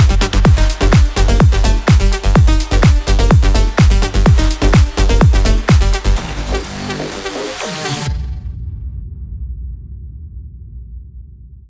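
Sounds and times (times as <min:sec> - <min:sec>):
intense future rave music: 0:00.0 - 0:08.4.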